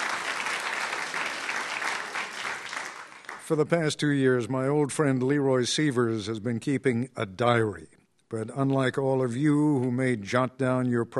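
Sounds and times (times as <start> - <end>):
live audience applause: 0.0 - 3.6
speech: 3.5 - 11.1.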